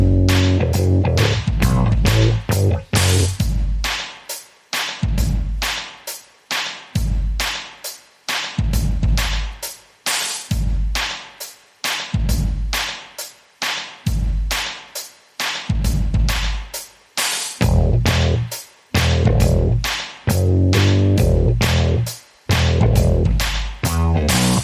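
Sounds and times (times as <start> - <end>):
bass: 0.0 - 3.8, 17.6 - 24.6
drums: 0.0 - 24.6.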